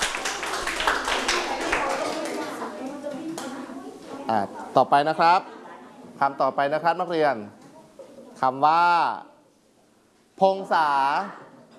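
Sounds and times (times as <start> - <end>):
students clapping for a classmate: 0.0 - 3.5
speech: 4.3 - 5.5, 6.2 - 7.6, 8.4 - 9.3, 10.4 - 11.4.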